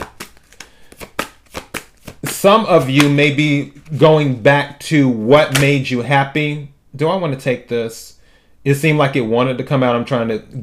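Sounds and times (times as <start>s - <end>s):
tarot cards being shuffled and drawn: 0.0s - 4.0s
speech: 2.4s - 10.6s.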